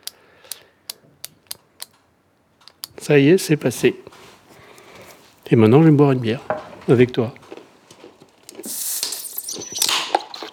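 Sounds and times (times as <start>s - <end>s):
injection pen pressed into belly skin clicking: 0.0s - 2.0s, 2.6s - 3.0s
speech: 3.0s - 4.2s, 5.5s - 7.4s.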